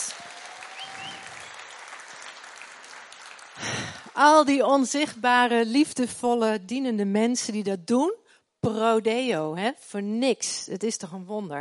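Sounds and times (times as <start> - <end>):
audience applause: 0.0 - 4.2
speech: 3.6 - 11.5.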